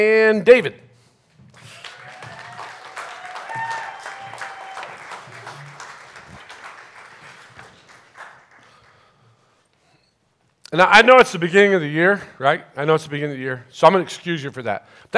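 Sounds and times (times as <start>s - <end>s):
speech: 0.0s - 0.8s, 10.7s - 15.1s
audience applause welcoming three guests: 1.6s - 9.1s.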